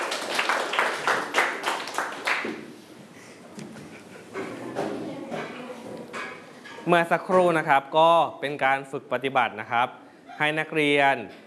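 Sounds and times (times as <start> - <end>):
students applauding themselves: 0.0 - 2.6
speech: 6.9 - 11.4.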